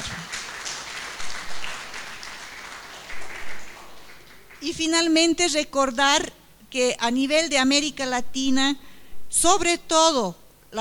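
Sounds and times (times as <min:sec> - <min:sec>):
audience applause: 0:00.0 - 0:04.7
speech: 0:04.6 - 0:10.7.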